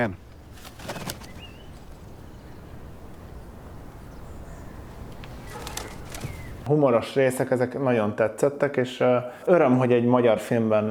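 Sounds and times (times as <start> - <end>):
speech: 0.0 - 0.2, 6.7 - 10.9
pigeon wings flapping as it takes off: 0.5 - 2.0, 5.4 - 6.7.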